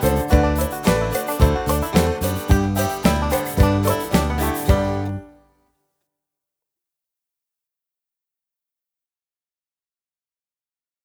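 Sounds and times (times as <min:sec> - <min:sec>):
instrumental music: 0:00.0 - 0:05.4.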